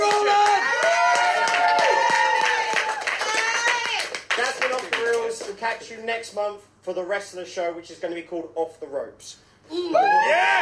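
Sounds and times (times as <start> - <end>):
audience round of applause: 0.0 - 5.3
speech: 5.8 - 10.6.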